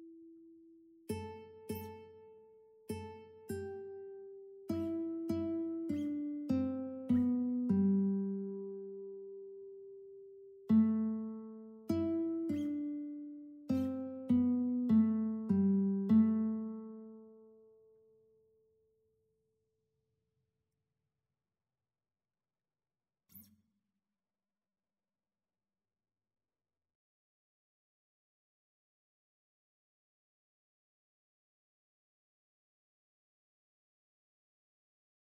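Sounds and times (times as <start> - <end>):
guitar duet: 1.1 - 18.0.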